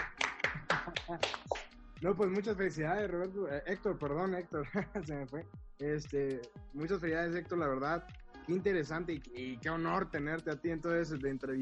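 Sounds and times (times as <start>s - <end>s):
hand clapping: 0.0s - 2.6s
speech: 1.1s - 11.6s
laughter: 4.5s - 5.1s.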